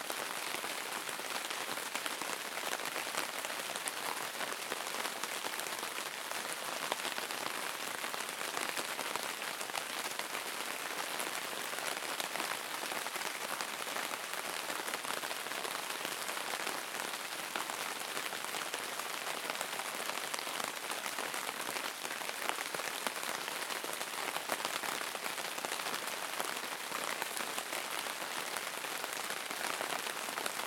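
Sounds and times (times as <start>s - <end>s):
drizzling rain on tent canvas: 0.0s - 30.6s.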